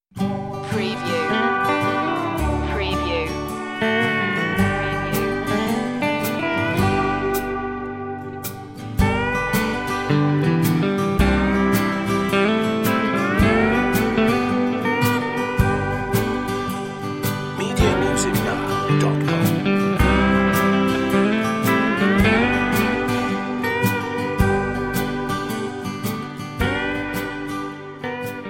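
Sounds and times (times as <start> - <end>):
country music: 0.2 - 28.4.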